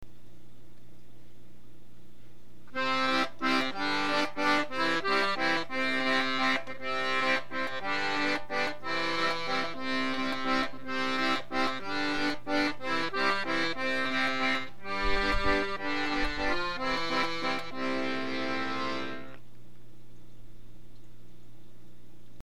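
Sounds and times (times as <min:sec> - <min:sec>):
nursery rhyme tune: 0:02.8 - 0:19.4.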